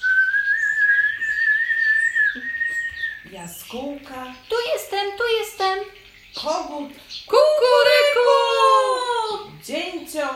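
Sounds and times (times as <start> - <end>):
person whistling in imitation of a blackbird's song: 0.0 - 3.2
speech: 3.4 - 8.4, 9.7 - 10.3.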